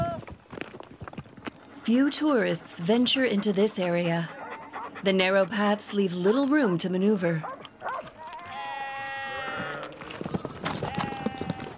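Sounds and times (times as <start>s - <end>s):
speech: 1.8s - 4.4s, 5.0s - 7.5s
sheep bleating: 8.2s - 10.0s, 10.8s - 11.7s.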